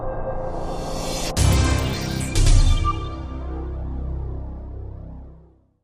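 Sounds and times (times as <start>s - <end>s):
middle musical sting: 0.4s - 4.6s.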